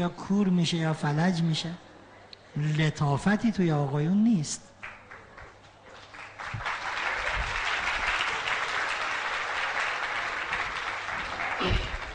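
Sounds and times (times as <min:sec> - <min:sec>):
speech: 0:00.0 - 0:01.9, 0:02.6 - 0:04.7
audience clapping: 0:04.8 - 0:12.1.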